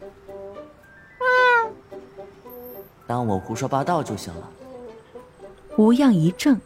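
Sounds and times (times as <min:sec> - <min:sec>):
soft low meow from a white kitten in a schoolbag: 0:01.2 - 0:01.8
speech: 0:03.1 - 0:04.6, 0:05.8 - 0:06.6.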